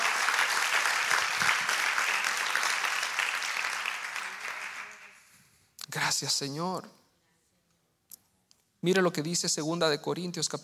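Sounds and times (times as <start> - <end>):
audience applauding: 0.0 - 5.2
speech: 6.2 - 7.0, 8.8 - 10.6.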